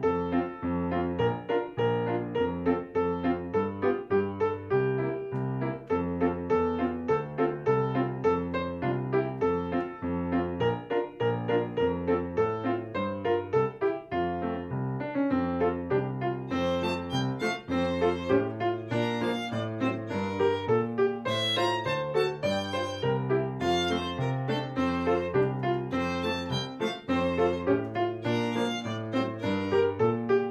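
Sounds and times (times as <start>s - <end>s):
piano: 0.0s - 30.4s
violin: 16.4s - 30.4s.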